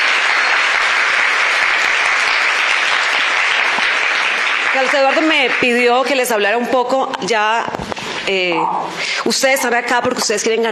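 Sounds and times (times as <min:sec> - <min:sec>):
loud applause from a crowd: 0:00.0 - 0:06.6
speech: 0:04.8 - 0:10.7.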